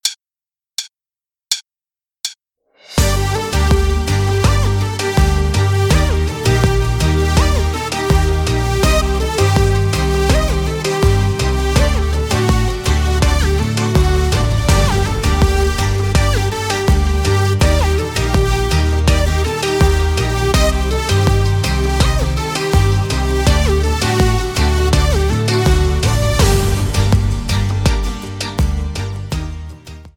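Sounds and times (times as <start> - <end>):
kizomba base beat: 3.0 - 29.9.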